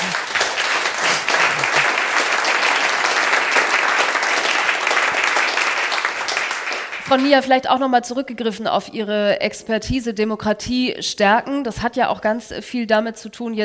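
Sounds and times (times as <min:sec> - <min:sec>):
audience applause: 0:00.0 - 0:07.2
speech: 0:07.1 - 0:13.6.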